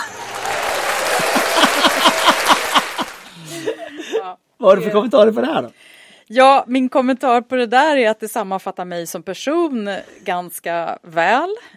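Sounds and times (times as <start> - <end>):
short applause: 0.0 - 3.5
laughter: 0.0 - 4.2
speech: 4.6 - 11.7.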